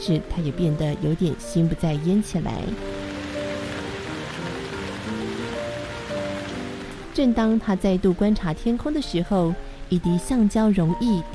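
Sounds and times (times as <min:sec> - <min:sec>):
speech: 0:00.0 - 0:03.0, 0:07.2 - 0:11.3
rain falling: 0:02.7 - 0:07.5.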